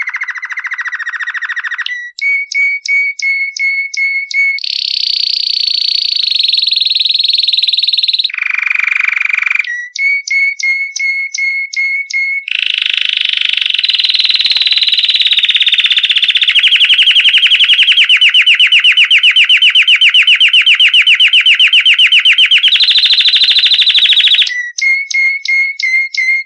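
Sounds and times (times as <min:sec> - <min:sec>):
canary buzzy trill of fast repeated notes: 0:00.0 - 0:26.4.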